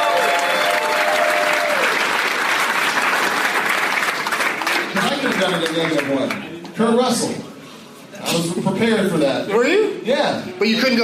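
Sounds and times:
audience applause for a game contestant: 0:00.0 - 0:06.4
speech: 0:05.5 - 0:07.5, 0:08.3 - 0:11.0.

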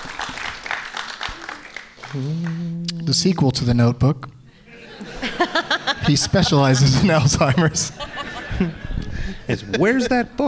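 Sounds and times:
light audience applause: 0:00.0 - 0:02.7
speech: 0:02.1 - 0:04.4, 0:05.4 - 0:08.8, 0:09.5 - 0:10.4
laughter: 0:04.5 - 0:10.4.

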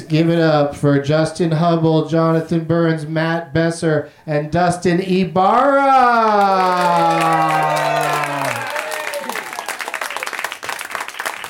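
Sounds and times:
speech: 0:00.1 - 0:07.8
audience applauding: 0:06.0 - 0:11.4.

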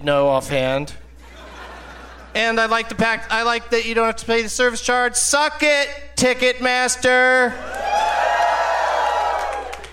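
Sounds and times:
speech: 0:00.0 - 0:01.0, 0:02.4 - 0:07.7
laughter: 0:01.2 - 0:02.6
audience cheering: 0:07.6 - 0:09.9.

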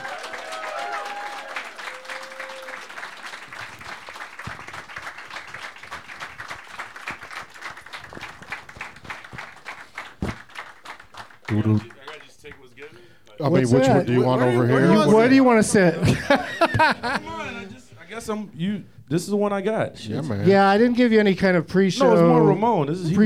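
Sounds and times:
audience applause welcoming three guests onto a show: 0:00.0 - 0:12.8
speech: 0:11.5 - 0:12.0, 0:13.4 - 0:17.5, 0:18.2 - 0:23.2
laughter: 0:14.0 - 0:17.8.

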